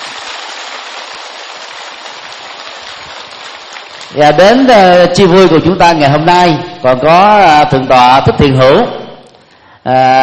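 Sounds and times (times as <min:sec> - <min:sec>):
audience applause: 0:00.0 - 0:04.3
speech: 0:04.1 - 0:09.0, 0:09.8 - 0:10.2.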